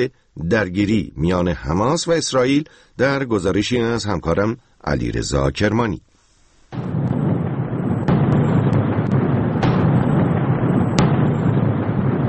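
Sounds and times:
speech: 0.0 - 6.1
bombs exploding on the Hamas prime minister's building in Gaza during Israeli airstrikes: 6.7 - 12.2.

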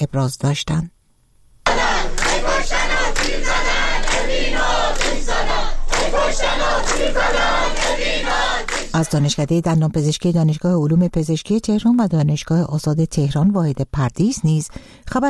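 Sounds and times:
speech: 0.1 - 1.0, 5.3 - 15.2
students chanting protest slogans: 1.7 - 9.3.

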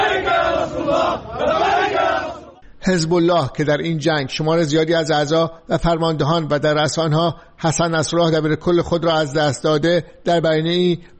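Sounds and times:
crowd of Hezbollah supporters cheering and chanting at a victory celebration: 0.0 - 2.6
speech: 2.9 - 11.1.

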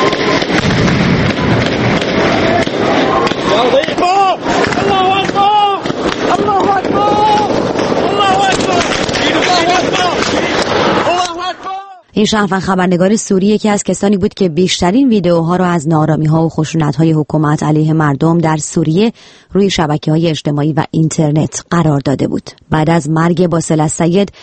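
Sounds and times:
gunfire: 0.0 - 11.3
people screaming: 2.2 - 12.0
speech: 12.2 - 24.4.

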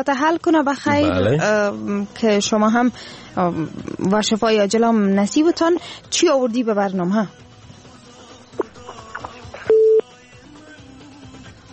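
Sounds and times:
speech: 0.0 - 7.4
phone line tone after a caller's call was cut off: 9.6 - 10.1.

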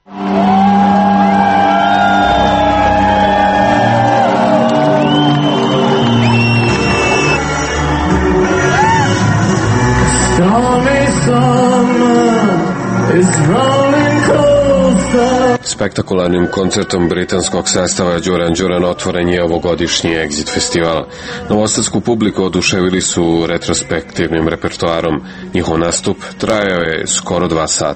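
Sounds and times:
crowd whooping and shouting at the Exit music festival in Novi Sad: 0.0 - 15.4
speech: 15.8 - 27.9.

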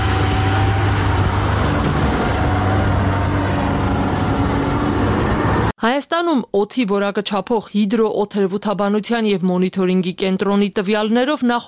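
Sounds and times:
truck rumbling out of a construction site onto a dusty road: 0.0 - 5.7
speech: 5.8 - 11.6.

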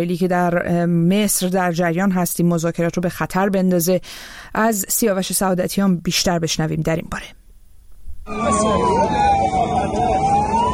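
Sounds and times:
speech: 0.0 - 7.4, 8.3 - 9.6
ambulance siren wailing: 8.3 - 10.7
crowd noise: 8.3 - 10.7.

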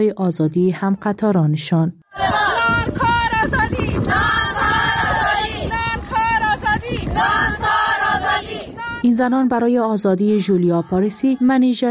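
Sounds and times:
speech: 0.0 - 4.3, 9.2 - 11.8
women protesters chanting at a protest march: 2.0 - 9.2, 10.0 - 11.8
wind-buffeted crowd noise: 2.1 - 11.8.

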